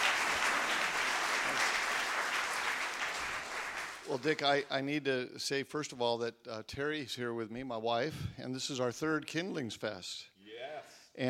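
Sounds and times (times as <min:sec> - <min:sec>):
audience applause: 0:00.0 - 0:04.6
speech: 0:04.1 - 0:11.2.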